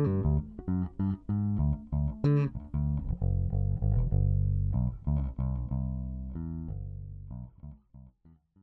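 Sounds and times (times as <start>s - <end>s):
1992 Gibson Thunderbird bass guitar: 0.0s - 8.6s.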